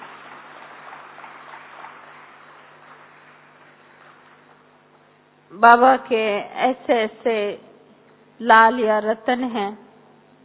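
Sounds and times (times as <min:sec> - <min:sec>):
crowd in loud welcoming applause: 0:00.0 - 0:04.8
speech: 0:05.5 - 0:07.7, 0:08.4 - 0:09.8.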